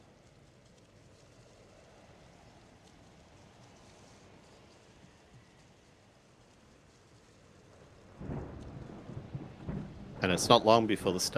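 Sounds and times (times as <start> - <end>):
thunderstorm rain: 0.0 - 11.3
rolling thunder in a thunderstorm: 8.1 - 11.3
speech: 10.2 - 11.3.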